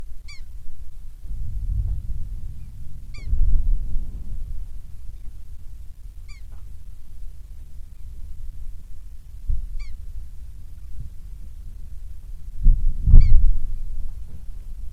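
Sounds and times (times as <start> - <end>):
pika calls: 0.2 - 0.5, 2.6 - 3.4, 6.2 - 6.6, 9.7 - 10.1, 13.2 - 13.4
Muldrow glacier surge low-frequency rumble: 0.6 - 14.9.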